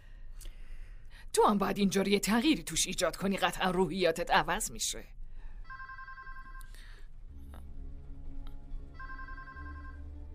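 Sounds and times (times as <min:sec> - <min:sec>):
low hum: 0:00.0 - 0:10.3
speech: 0:01.3 - 0:05.2
telephone ringing with electronic warble: 0:05.7 - 0:06.7, 0:09.0 - 0:10.2.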